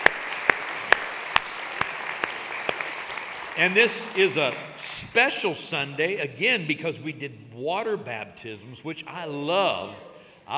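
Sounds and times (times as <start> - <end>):
audience applause: 0.0 - 5.2
speech: 3.6 - 10.5.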